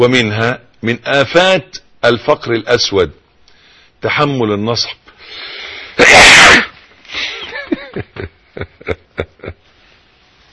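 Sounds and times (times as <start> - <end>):
speech: 0.0 - 3.2, 4.0 - 7.3, 8.0 - 9.6
loud explosive sneeze: 5.9 - 6.9
breathy chuckles and snickers: 7.2 - 9.7.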